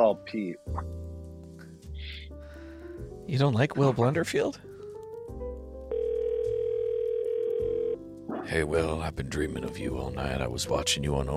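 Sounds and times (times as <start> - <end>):
speech: 0.0 - 1.0, 3.3 - 4.7, 8.5 - 11.3
telephone dial tone while placing a call: 5.9 - 8.0.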